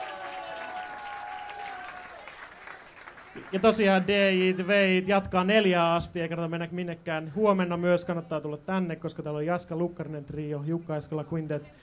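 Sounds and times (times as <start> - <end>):
audience applause at live concert: 0.0 - 4.7
speech: 3.4 - 11.8.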